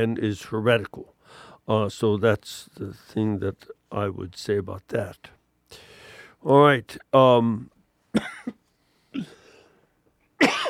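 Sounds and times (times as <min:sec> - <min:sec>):
speech: 0:00.0 - 0:08.6, 0:09.2 - 0:09.4
person sneezing or coughing: 0:08.2 - 0:09.7, 0:10.4 - 0:10.6.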